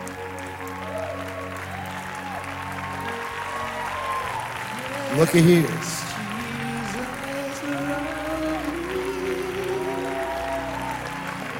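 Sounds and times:
audience clapping: 0:00.0 - 0:11.5
voices holding long notes: 0:00.0 - 0:11.5
speech: 0:05.1 - 0:06.0.

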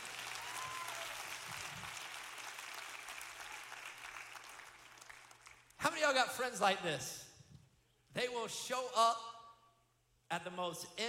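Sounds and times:
audience applause at a live show: 0:00.0 - 0:05.7
speech: 0:06.0 - 0:07.2, 0:08.2 - 0:09.3, 0:10.3 - 0:11.0.

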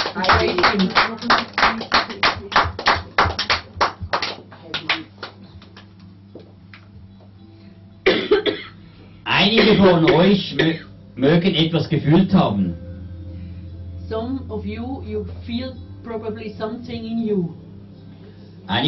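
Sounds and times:
audience clapping hands: 0:00.0 - 0:06.2
speech: 0:00.2 - 0:02.6, 0:09.5 - 0:12.9, 0:14.1 - 0:17.6, 0:18.7 - 0:18.8.

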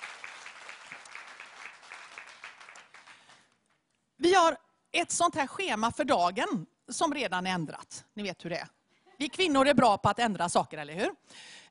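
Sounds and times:
audience applause: 0:00.0 - 0:03.8
speech: 0:04.2 - 0:11.6.

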